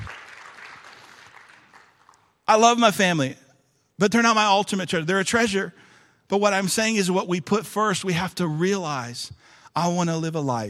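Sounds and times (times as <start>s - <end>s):
audience applause: 0.0s - 2.2s
speech: 2.5s - 3.4s, 4.0s - 10.6s.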